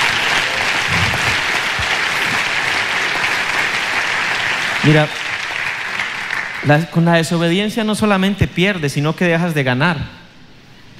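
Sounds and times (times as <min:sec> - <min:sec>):
audience applause: 0:00.0 - 0:06.8
speech: 0:04.8 - 0:05.2, 0:06.6 - 0:10.2.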